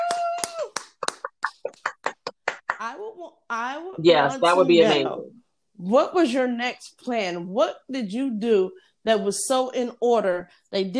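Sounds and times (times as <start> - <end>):
audience clapping in a quick rhythm: 0.0 - 2.8
speech: 2.9 - 10.9.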